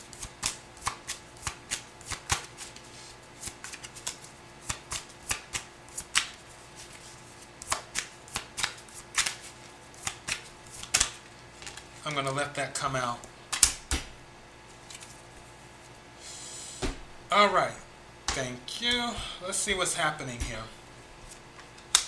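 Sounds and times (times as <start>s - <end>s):
tarot cards being shuffled and drawn: 0.2s - 12.4s, 14.7s - 15.4s
speech: 12.2s - 13.3s, 17.3s - 17.8s, 18.4s - 20.8s.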